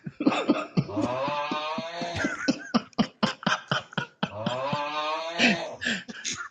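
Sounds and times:
laughter: 0:00.0 - 0:06.5
person fake snoring: 0:00.8 - 0:02.7, 0:04.0 - 0:06.1.

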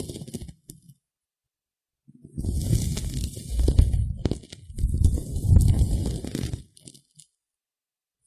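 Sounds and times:
ear picking and ear massage rubbing and crunching: 0:02.4 - 0:06.6.

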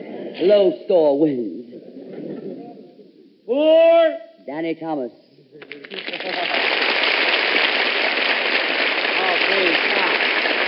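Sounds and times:
speech: 0:00.4 - 0:01.6, 0:03.5 - 0:05.2
audience applause: 0:05.6 - 0:10.6.

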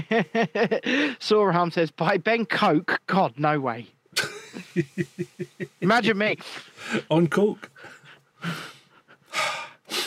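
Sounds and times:
laughter: 0:00.0 - 0:01.2, 0:04.2 - 0:05.9
speech: 0:00.1 - 0:04.0, 0:04.8 - 0:07.7, 0:08.4 - 0:08.7
sniffing: 0:06.4 - 0:07.1, 0:07.8 - 0:10.0.

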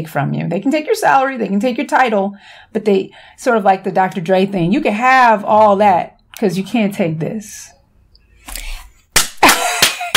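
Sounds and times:
speech: 0:00.0 - 0:07.8
hands clapping: 0:09.1 - 0:10.1.

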